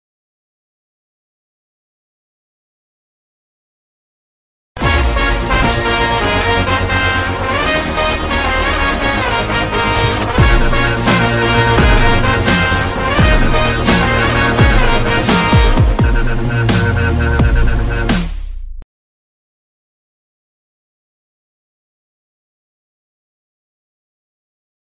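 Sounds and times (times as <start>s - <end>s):
Telugu ringtone background music: 4.8s - 18.5s.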